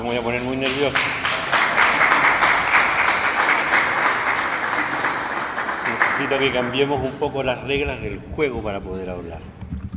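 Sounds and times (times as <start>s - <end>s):
speech: 0.0s - 1.4s, 6.2s - 9.6s
audience applause: 0.4s - 6.9s.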